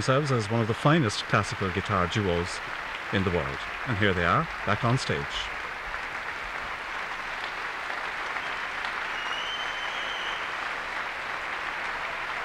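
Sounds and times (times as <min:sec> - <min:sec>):
speech: 0:00.0 - 0:05.5
applause from a large audience and orchestra: 0:00.0 - 0:12.4
faint high whistle-like tone: 0:09.2 - 0:10.5.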